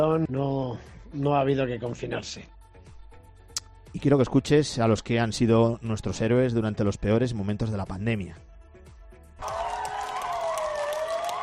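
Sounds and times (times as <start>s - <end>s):
speech: 0.1s - 2.6s, 3.9s - 8.5s
balcony applause for healthcare workers: 9.4s - 11.4s.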